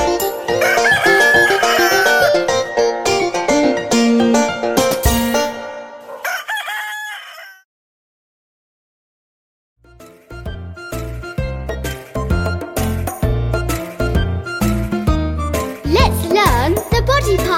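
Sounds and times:
bright busy music: 0.0 - 5.8, 9.9 - 17.5
rooster crowing: 0.6 - 2.4, 6.0 - 7.7.

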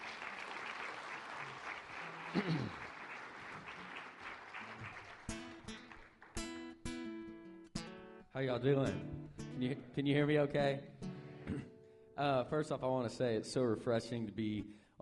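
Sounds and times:
church congregation clapping to welcome a guest: 0.0 - 6.6
speech: 2.3 - 2.8, 8.4 - 10.9, 11.5 - 15.0.

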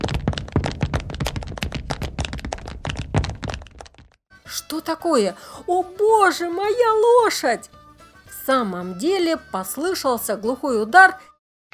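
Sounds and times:
running footsteps: 0.0 - 4.2
speech: 4.5 - 7.8, 8.5 - 11.3.

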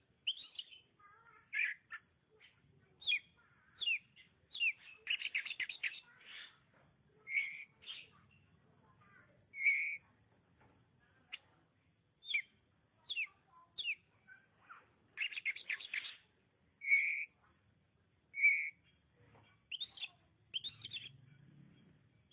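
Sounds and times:
Oriental magpie-robin singing: 0.0 - 6.6, 7.2 - 10.1, 12.2 - 14.5, 15.2 - 17.4, 18.3 - 21.3.

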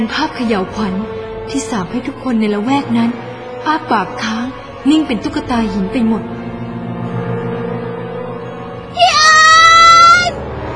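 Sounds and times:
speech: 0.0 - 6.4
shrill scream: 9.0 - 10.4.

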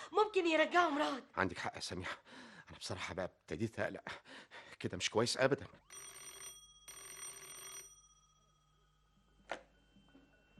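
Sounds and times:
speech: 0.1 - 6.2
telephone ringing: 5.8 - 10.5.

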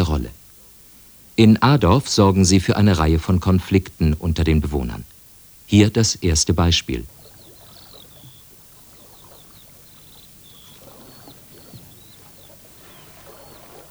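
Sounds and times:
river water flowing on an early summer evening: 0.0 - 13.9
speech: 1.4 - 5.1, 5.7 - 7.2
bird chirping and whistling: 7.3 - 13.9.

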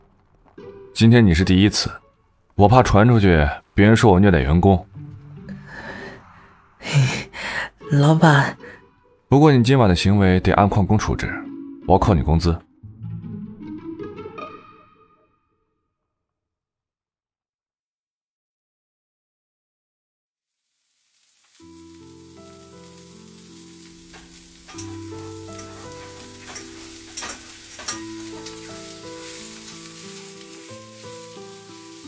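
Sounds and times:
speech: 0.6 - 2.0, 2.6 - 5.0, 7.9 - 12.7
food sizzling in a pan in a kitchen: 20.5 - 32.0.

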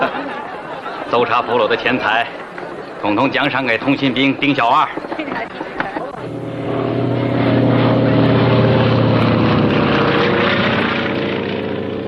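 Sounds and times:
laughter: 0.0 - 6.3
airplane flying overhead dropping leaflets: 0.0 - 12.0
speech: 1.1 - 2.4, 3.0 - 5.9.

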